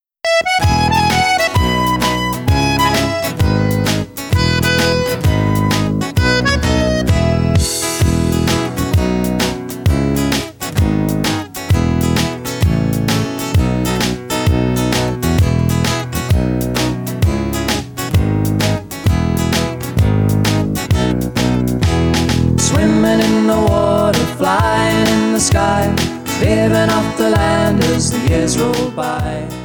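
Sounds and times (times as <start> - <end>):
backing music: 0.2 - 29.6.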